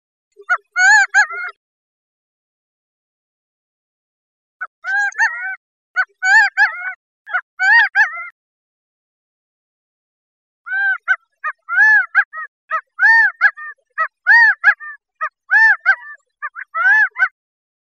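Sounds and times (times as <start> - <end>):
Gambel's quail call: 0.4 - 1.6, 4.6 - 8.3, 10.7 - 17.4.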